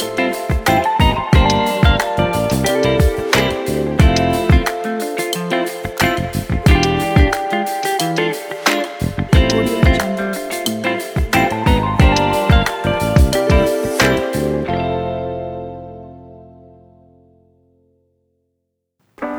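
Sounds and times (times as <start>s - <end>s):
neo soul hip-hop music: 0.0s - 15.4s.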